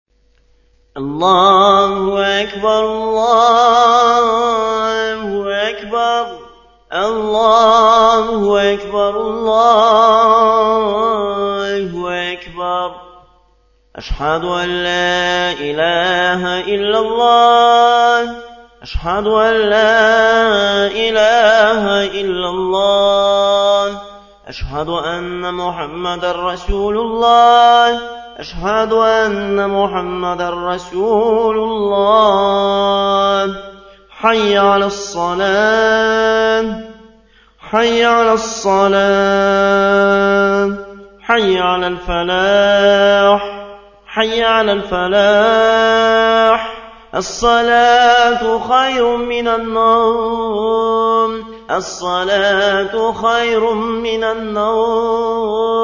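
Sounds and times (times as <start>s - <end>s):
Azan call to prayer: 1.0s - 55.8s.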